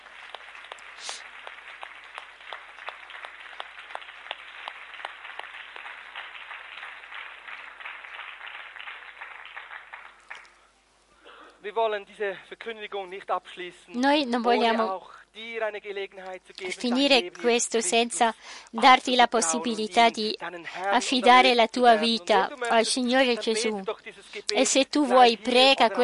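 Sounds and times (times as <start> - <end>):
audience applauding: 0.0 - 10.7
speech: 11.6 - 26.0.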